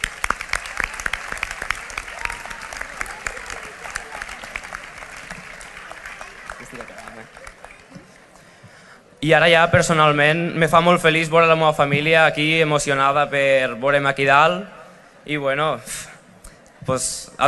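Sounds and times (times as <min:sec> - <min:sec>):
audience applauding: 0:00.0 - 0:08.4
speech: 0:09.2 - 0:16.1, 0:16.8 - 0:17.4.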